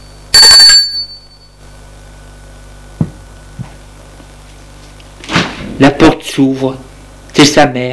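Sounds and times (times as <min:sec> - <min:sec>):
doorbell ringing: 0:00.0 - 0:01.6
speech: 0:05.8 - 0:07.9.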